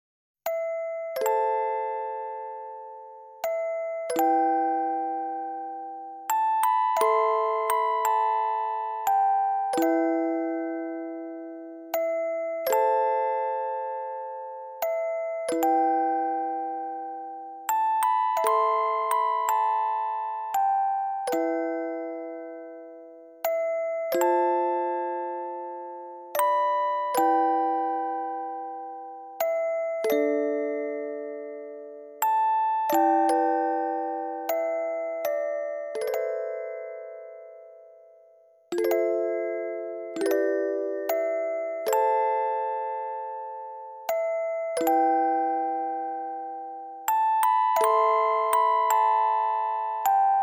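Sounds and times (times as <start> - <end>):
music box: 0.4 - 50.4.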